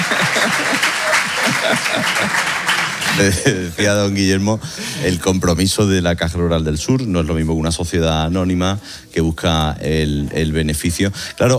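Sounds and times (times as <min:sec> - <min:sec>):
audience applause: 0:00.0 - 0:04.1
laughter: 0:00.0 - 0:05.2
speech: 0:01.9 - 0:02.6, 0:03.2 - 0:11.5.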